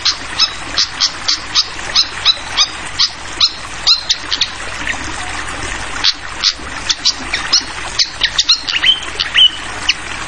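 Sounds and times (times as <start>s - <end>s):
flycatcher sharp high chips: 0.0s - 4.6s, 6.4s - 9.6s
running water trickling: 0.0s - 10.2s.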